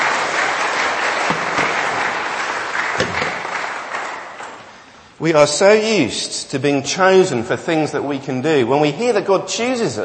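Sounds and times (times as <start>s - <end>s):
audience round of applause for volunteers: 0.0s - 4.7s
speech: 5.2s - 10.0s.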